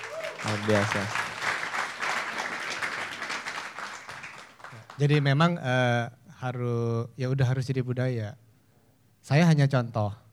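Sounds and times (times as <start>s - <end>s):
audience applause: 0.0s - 5.0s
speech: 0.4s - 1.2s, 5.0s - 8.4s, 9.2s - 10.2s.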